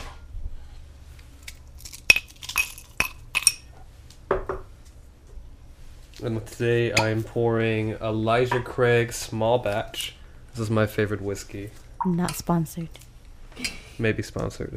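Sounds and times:
ice cubes clinking into a glass: 0:01.8 - 0:03.6
speech: 0:06.2 - 0:14.7.

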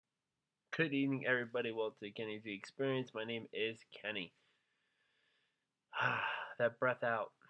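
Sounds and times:
speech: 0:00.8 - 0:04.4, 0:05.9 - 0:07.4
deep breath out: 0:04.4 - 0:06.6
short vocal sounds: 0:06.0 - 0:07.2.

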